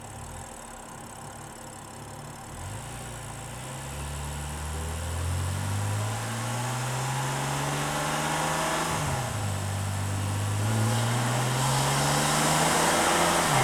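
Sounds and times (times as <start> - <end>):
car engine recorded onboard: 0.0 - 13.6.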